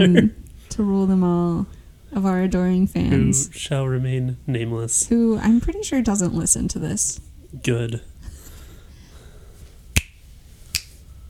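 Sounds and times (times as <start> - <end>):
speech: 0.0 - 8.1
finger snapping under a microphone: 10.0 - 11.0.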